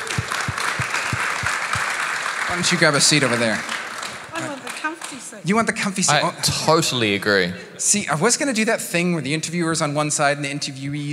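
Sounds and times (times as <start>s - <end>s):
audience applause: 0.0s - 5.4s
speech: 2.5s - 3.8s, 4.4s - 11.1s.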